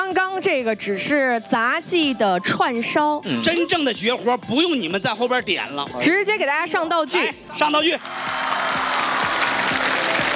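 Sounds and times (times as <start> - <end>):
speech: 0.1 - 8.4
audience applause at an acrobatics show: 7.8 - 10.3.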